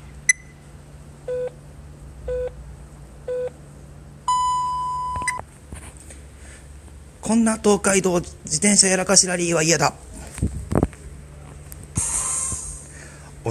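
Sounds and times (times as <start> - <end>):
faint steady hum: 0.0 - 13.5
telephone time signal beeps: 4.3 - 5.4
speech: 7.3 - 10.0.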